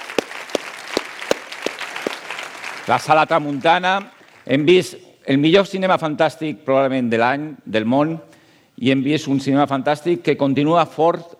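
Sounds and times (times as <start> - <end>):
sharp claps as applause for historic cinemas at a fantastic-film event: 0.0 - 3.0
speech: 2.9 - 11.3.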